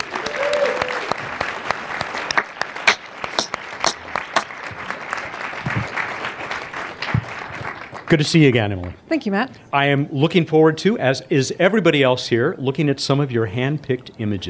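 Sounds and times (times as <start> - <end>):
audience applause welcoming a speaker on stage: 0.0 - 8.9
speech: 8.1 - 14.4.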